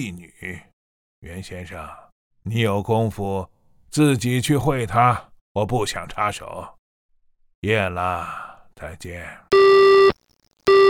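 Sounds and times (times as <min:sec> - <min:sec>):
speech: 0:00.0 - 0:06.8, 0:07.6 - 0:10.0
telephone busy tone after hang-up: 0:09.6 - 0:10.8.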